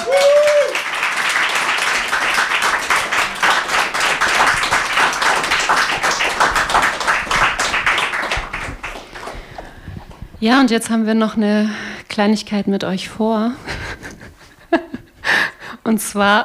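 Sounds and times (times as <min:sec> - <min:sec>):
crowd applause: 0:00.0 - 0:10.0
speech: 0:10.4 - 0:13.8, 0:15.9 - 0:16.4.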